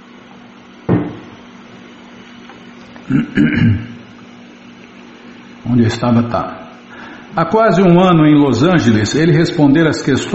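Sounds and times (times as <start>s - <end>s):
person drinking water: 2.4s - 5.0s
speech: 3.1s - 3.9s, 5.8s - 6.6s, 7.4s - 10.3s.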